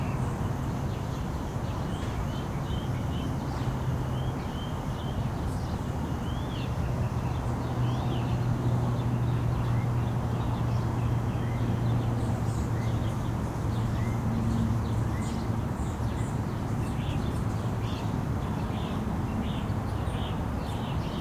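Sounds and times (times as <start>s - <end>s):
birds in a residential park: 0.0s - 21.1s
wind in a residential park: 0.0s - 21.1s.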